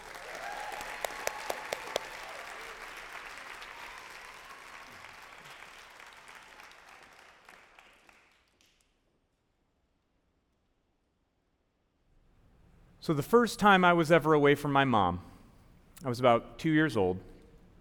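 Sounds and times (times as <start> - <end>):
audience applause: 0.0 - 8.8
speech: 13.0 - 15.3, 16.0 - 17.3.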